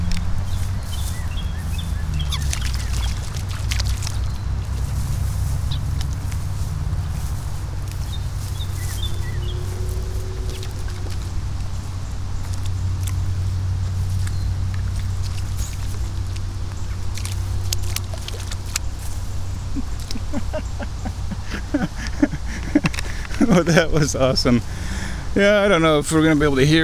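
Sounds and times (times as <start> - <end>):
frogs jumping and splashing into pond water: 0.0 - 25.2
steady low outdoor rumble: 0.0 - 26.8
laughter: 19.7 - 26.3
speech: 23.5 - 24.8, 25.4 - 26.8.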